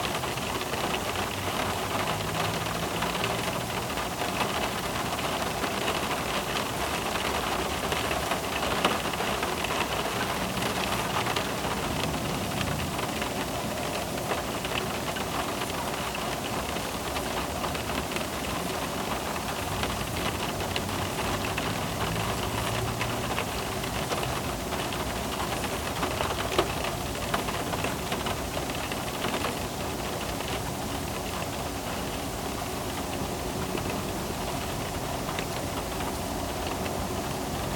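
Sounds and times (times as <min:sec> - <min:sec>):
light rain heard inside a car: 0:00.0 - 0:37.7.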